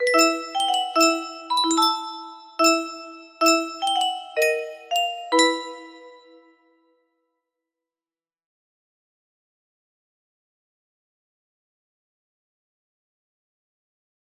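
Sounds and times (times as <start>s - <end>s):
music box: 0.0s - 6.4s.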